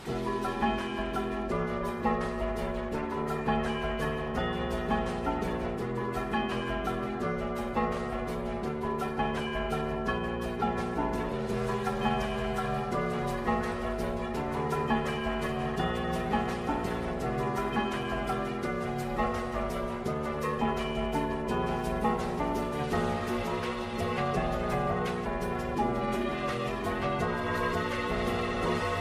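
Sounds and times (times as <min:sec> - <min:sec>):
Samsung Galaxy M20 Max ringtone: 0:00.1 - 0:29.0.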